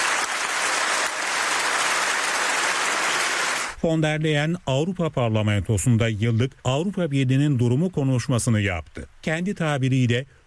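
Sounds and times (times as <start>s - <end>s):
standing ovation applause from a large crowd in parliament: 0.0s - 3.8s
speech: 3.8s - 10.4s.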